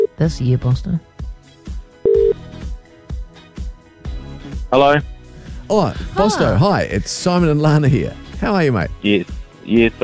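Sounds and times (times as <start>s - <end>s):
speech: 0.2s - 1.2s, 4.7s - 10.0s
telephone dialing tone: 2.1s - 2.4s.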